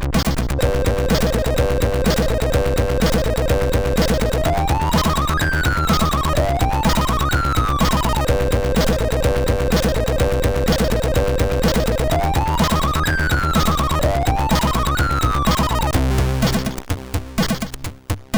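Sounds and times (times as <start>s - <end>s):
techno on a SID MOS6581R2 chip: 0.2s - 18.3s.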